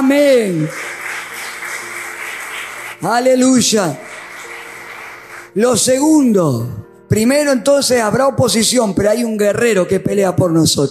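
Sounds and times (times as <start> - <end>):
audience applause: 0.0 - 5.5
speech: 0.1 - 0.9, 3.0 - 4.1, 5.5 - 10.9.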